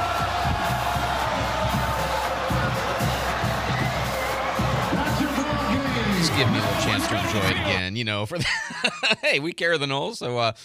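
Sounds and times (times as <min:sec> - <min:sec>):
huge stadium crowd cheering as fans storm the field: 0:00.0 - 0:07.9
speech: 0:06.3 - 0:10.6
laughter: 0:08.4 - 0:09.4.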